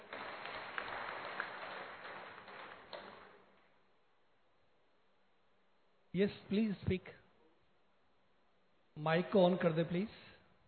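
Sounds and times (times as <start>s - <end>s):
audience applause: 0.0s - 3.5s
speech: 6.2s - 7.2s, 9.0s - 10.3s.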